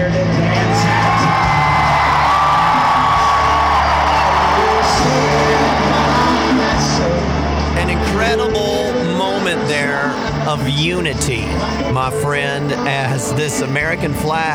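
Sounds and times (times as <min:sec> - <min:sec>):
big crowd cheering: 0:00.1 - 0:10.4
speech: 0:10.9 - 0:14.5.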